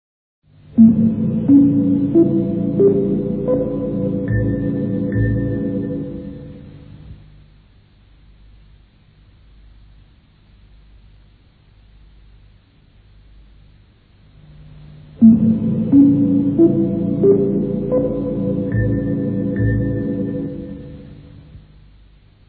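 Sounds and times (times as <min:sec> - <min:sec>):
radio interval signal: 0:00.7 - 0:07.0, 0:15.2 - 0:21.6.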